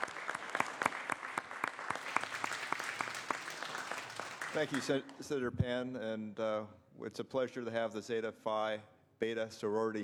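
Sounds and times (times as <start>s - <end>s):
room full of people clapping: 0.0s - 5.2s
speech: 4.6s - 10.0s.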